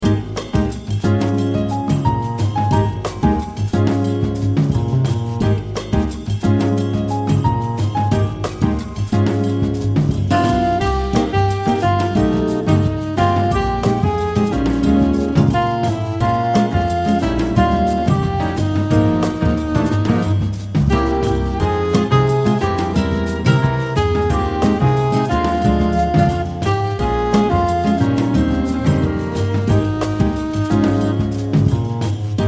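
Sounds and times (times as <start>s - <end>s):
soccer samba music: 0.0s - 32.4s.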